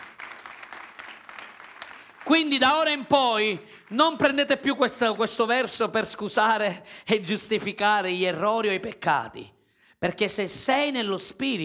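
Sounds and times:
audience applauding: 0.0s - 5.7s
speech: 2.3s - 11.6s.

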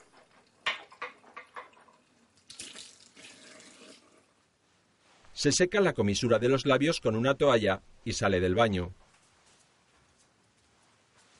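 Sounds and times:
water running from a bathroom sink tap: 1.6s - 4.2s
man in pajamas rinsing his mouth after brushing his teeth: 2.4s - 4.2s
speech: 5.4s - 9.0s.

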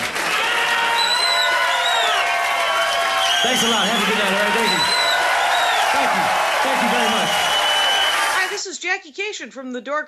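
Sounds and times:
audience applauding: 0.0s - 8.6s
high whistles: 0.9s - 6.0s, 6.9s - 8.6s
speech: 3.4s - 5.0s, 9.0s - 10.0s.

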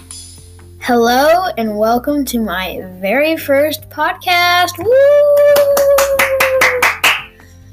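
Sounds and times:
speech: 0.8s - 6.3s
lone person clapping: 5.4s - 7.4s.

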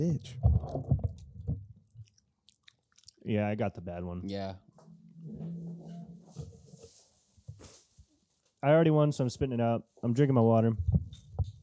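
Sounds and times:
speech: 0.0s - 1.0s, 3.3s - 4.7s, 8.6s - 10.9s
soft wet chewing on a jelly bean: 1.8s - 3.2s.

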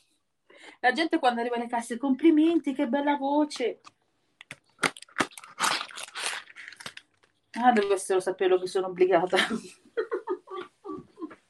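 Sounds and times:
speech: 0.8s - 4.0s, 7.6s - 10.1s
person chewing marinated tofu: 4.4s - 7.6s
laughter: 9.4s - 11.4s.

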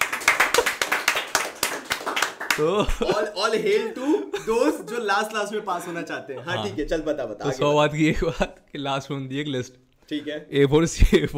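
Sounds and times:
clapping: 0.0s - 2.7s
laughter: 2.5s - 7.0s
speech: 2.6s - 11.3s.

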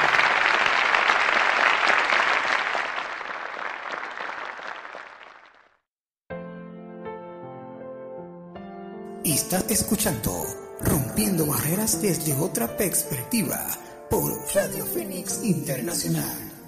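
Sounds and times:
loud applause: 0.0s - 5.8s
speech: 9.4s - 16.4s.

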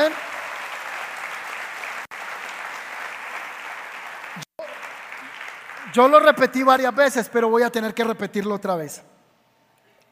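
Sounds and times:
audience applauding: 0.0s - 6.7s
speech: 6.0s - 9.2s.

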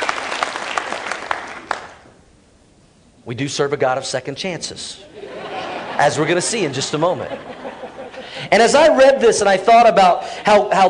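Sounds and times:
audience clapping: 0.0s - 2.1s
speech: 3.3s - 5.2s, 6.0s - 10.8s
laughter: 5.0s - 8.7s.

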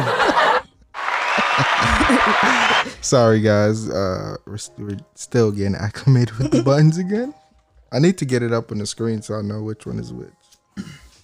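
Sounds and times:
laughter: 0.0s - 3.0s
applause sound effect: 1.0s - 2.8s
low voiced whoops: 1.0s - 2.9s
speech: 2.3s - 11.0s.

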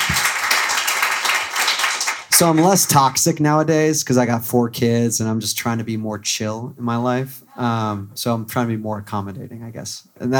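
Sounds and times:
audience applause: 0.0s - 2.9s
speech: 2.4s - 10.3s.

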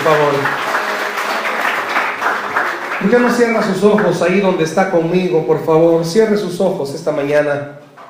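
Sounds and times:
audience applauding: 0.0s - 4.7s
speech: 0.1s - 0.7s, 3.0s - 7.8s.

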